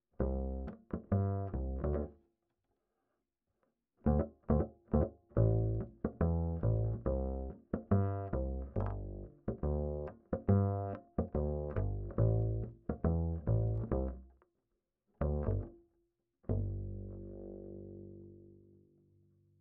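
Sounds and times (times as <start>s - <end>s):
bass line: 0.2s - 2.1s, 4.1s - 14.3s, 15.2s - 15.7s, 16.5s - 18.7s.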